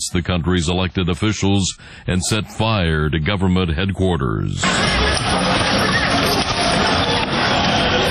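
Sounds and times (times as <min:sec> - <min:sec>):
speech: 0:00.0 - 0:06.5
large angry street protest crowd roaring: 0:04.6 - 0:08.0.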